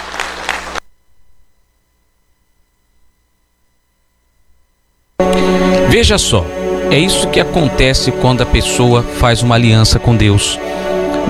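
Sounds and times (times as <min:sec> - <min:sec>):
audience applause: 0:00.0 - 0:00.8
speech: 0:05.9 - 0:11.2.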